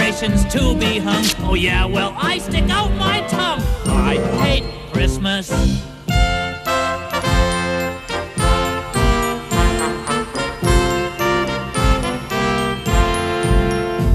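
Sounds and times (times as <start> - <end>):
speech: 0.2 - 5.9
Christmas bells jingling: 3.8 - 5.5, 7.3 - 14.1.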